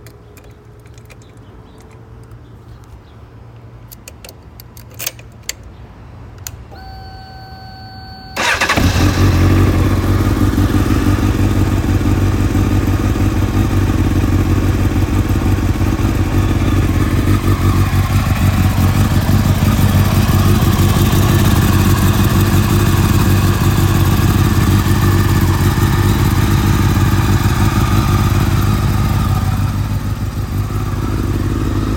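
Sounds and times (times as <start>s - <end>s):
motorcycle engine starting after oil leak repair: 6.7s - 31.9s.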